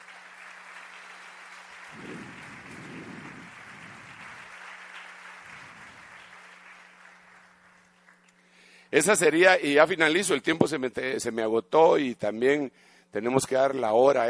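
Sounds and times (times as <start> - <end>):
audience applause: 0.0 - 8.3
speech: 8.9 - 14.2.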